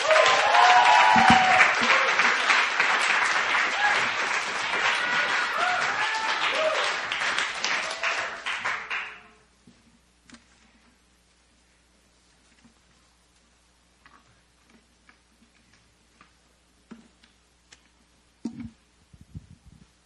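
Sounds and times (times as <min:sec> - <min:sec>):
audience applause welcoming a speaker at a testimony gathering: 0:00.0 - 0:09.4.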